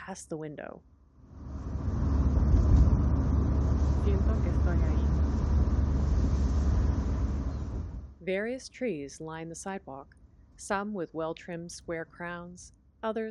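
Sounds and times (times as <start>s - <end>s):
speech: 0.1s - 0.9s, 8.2s - 13.2s
car accelerating along a city street: 1.3s - 8.2s.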